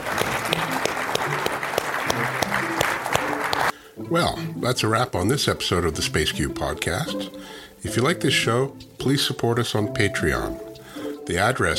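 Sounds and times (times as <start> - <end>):
audience applause: 0.0 - 3.8
speech: 4.1 - 10.6, 11.3 - 11.7.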